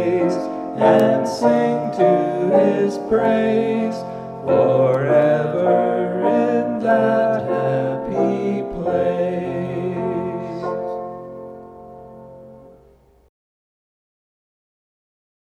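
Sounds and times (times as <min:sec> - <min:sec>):
hymn: 0:00.0 - 0:11.6.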